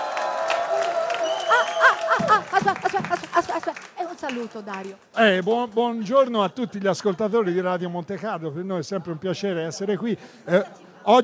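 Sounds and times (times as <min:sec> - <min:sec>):
audience applause: 0:00.0 - 0:05.2
laughter: 0:00.8 - 0:04.0, 0:06.3 - 0:07.6
speech: 0:02.6 - 0:11.2.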